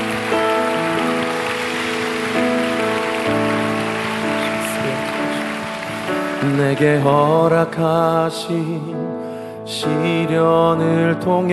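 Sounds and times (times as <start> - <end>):
audience applause: 0.0 - 7.8
speech: 6.6 - 11.5.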